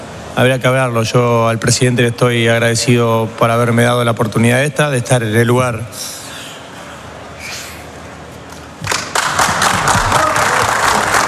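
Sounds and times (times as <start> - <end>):
speech: 0.4 - 6.2
applause in a stadium press room: 8.8 - 11.2.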